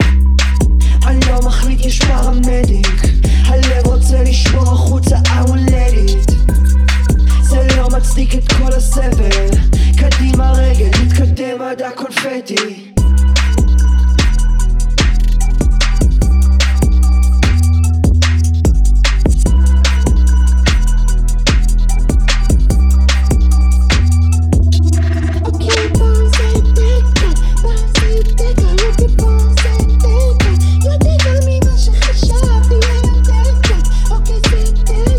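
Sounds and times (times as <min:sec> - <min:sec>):
flagger vocals: 0:00.0 - 0:35.1.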